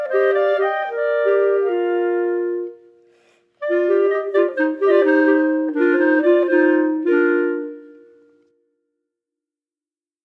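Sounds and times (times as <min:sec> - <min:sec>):
polka music: 0:00.0 - 0:02.8, 0:03.6 - 0:07.9.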